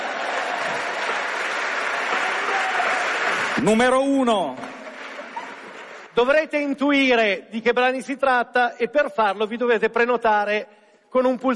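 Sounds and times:
audience applause: 0.0 - 6.2
speech: 3.6 - 4.6, 6.2 - 11.5.

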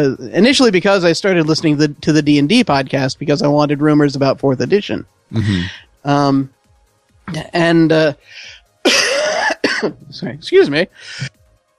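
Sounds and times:
speech: 0.0 - 6.6, 7.3 - 9.0, 9.8 - 11.4
person in a coughing fit with choking: 5.3 - 5.7, 8.8 - 10.1.

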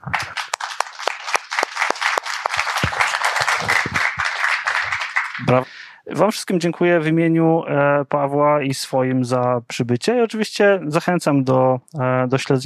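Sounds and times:
audience applause: 0.0 - 5.9
speech: 5.4 - 12.6.

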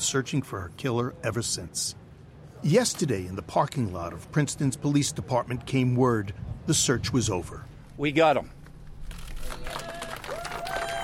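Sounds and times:
speech: 0.1 - 2.0, 2.6 - 8.6
scattered clapping: 9.3 - 11.0
local residents shouting and cheering outside Princeton police department: 9.7 - 11.0.

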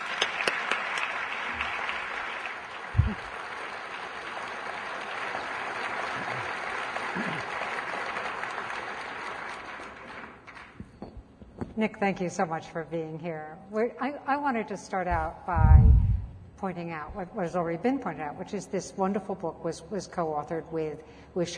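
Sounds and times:
audience applause welcoming speakers at an evening event: 0.0 - 10.8
speech: 11.8 - 16.0, 16.6 - 21.5.

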